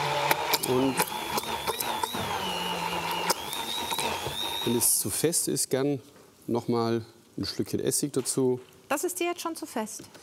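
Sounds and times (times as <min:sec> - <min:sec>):
immersion blender pureeing a creamy tuna sauce with vinegar: 0:00.0 - 0:05.2
speech: 0:00.7 - 0:01.2, 0:04.7 - 0:10.2.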